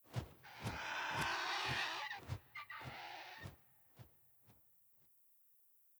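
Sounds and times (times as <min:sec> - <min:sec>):
vulture flying overhead: 0:00.1 - 0:03.6.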